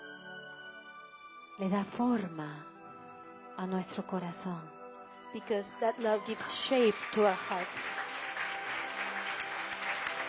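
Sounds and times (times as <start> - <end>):
speech: 1.6 - 2.7, 3.6 - 8.0
applause at a worship gathering: 5.8 - 10.2.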